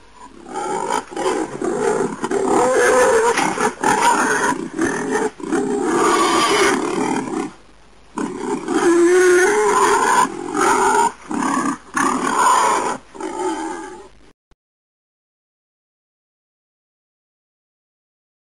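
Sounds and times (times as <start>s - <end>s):
wild boar growling: 0.2s - 7.6s, 8.2s - 14.1s.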